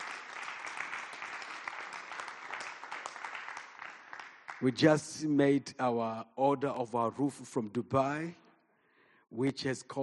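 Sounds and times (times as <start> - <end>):
audience clapping hands: 0.0 - 5.1
speech: 4.6 - 8.4, 9.3 - 10.0.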